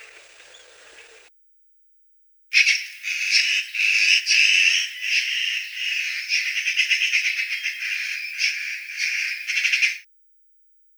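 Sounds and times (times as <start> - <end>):
Eurasian magpie harsh chatter: 2.6 - 10.0.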